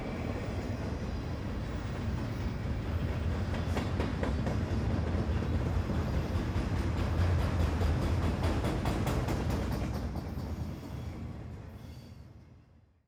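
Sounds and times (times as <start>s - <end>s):
train passing by: 0.0s - 12.6s.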